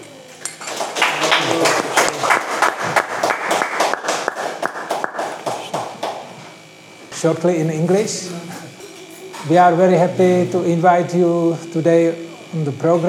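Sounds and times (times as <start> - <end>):
applause welcoming a visiting swami as a guest on a program: 0.5 - 6.3
speech: 7.2 - 8.5, 9.4 - 13.0.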